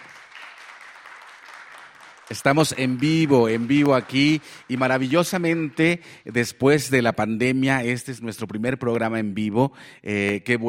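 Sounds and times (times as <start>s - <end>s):
audience applause for the musicians: 0.0s - 6.0s
speech: 2.3s - 10.6s.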